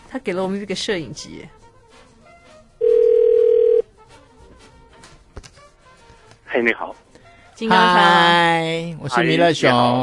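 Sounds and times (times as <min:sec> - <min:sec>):
speech: 0:00.1 - 0:01.6, 0:06.5 - 0:07.0, 0:07.6 - 0:10.0
telephone dial tone while calling: 0:02.8 - 0:03.8.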